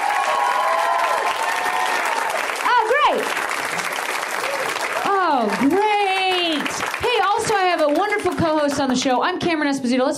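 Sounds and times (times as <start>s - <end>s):
audience clapping: 0.0s - 9.3s
speech: 8.8s - 10.1s.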